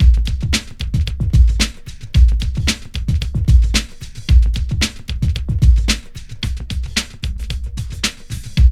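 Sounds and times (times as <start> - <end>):
music loop: 0.0 - 8.7.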